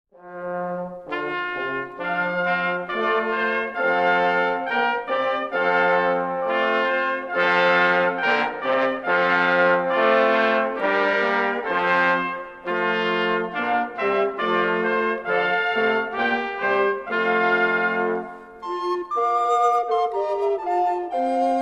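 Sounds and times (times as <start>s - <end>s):
recorder quartet: 0.2s - 21.6s.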